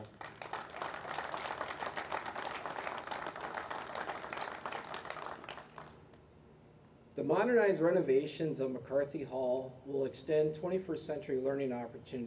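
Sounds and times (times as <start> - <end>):
audience applause: 0.0 - 6.1
speech: 7.2 - 12.2.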